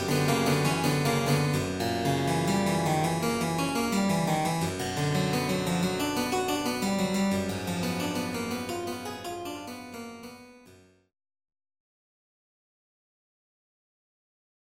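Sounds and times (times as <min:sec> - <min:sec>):
harpsichord fugue: 0:00.0 - 0:10.7.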